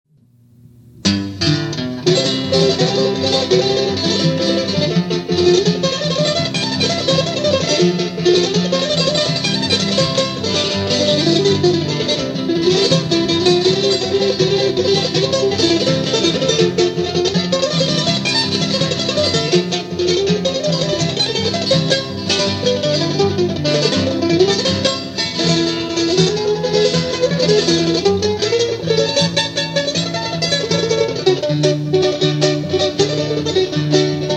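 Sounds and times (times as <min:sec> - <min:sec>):
instrumental music: 0:00.4 - 0:34.3.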